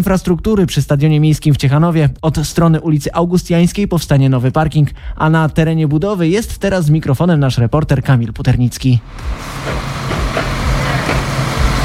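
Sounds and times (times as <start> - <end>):
speech: 0.0 - 10.5
heavy construction equipment working: 9.0 - 11.8.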